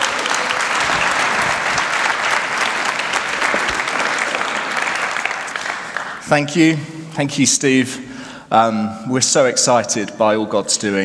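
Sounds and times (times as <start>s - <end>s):
audience applauding to welcome a speaker at a church service: 0.0s - 6.3s
speech: 6.3s - 11.0s.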